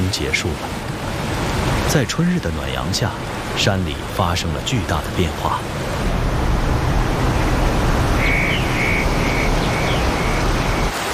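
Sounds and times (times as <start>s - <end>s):
babbling mountain stream water: 0.0s - 11.1s
speech: 0.1s - 1.0s, 1.9s - 6.1s
high repeated chirping calls: 8.2s - 10.9s.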